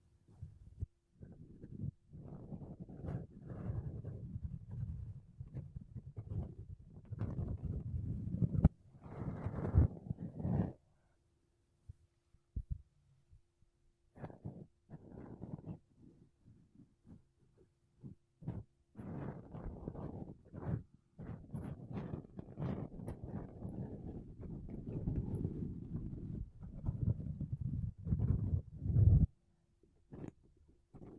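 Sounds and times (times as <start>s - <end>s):
makeup brushes and a sponge rubbing across a microphone: 1.3s - 10.8s, 14.2s - 17.2s, 18.0s - 29.3s, 30.1s - 30.4s, 31.0s - 31.1s.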